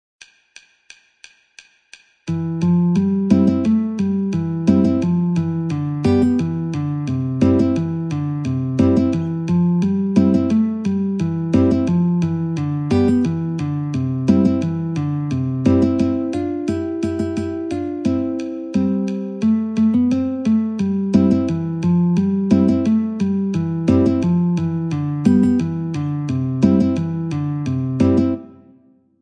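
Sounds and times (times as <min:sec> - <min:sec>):
metronome ticking at 88: 0:00.2 - 0:28.4
guitar: 0:02.3 - 0:28.8.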